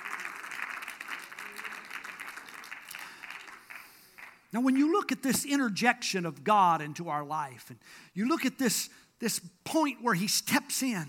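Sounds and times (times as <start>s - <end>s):
audience clapping: 0.0s - 5.0s
speech: 4.5s - 11.0s.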